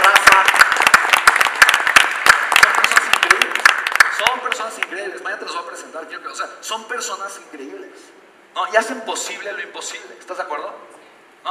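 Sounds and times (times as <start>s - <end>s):
audience applause: 0.0s - 4.8s
speech: 4.7s - 11.4s.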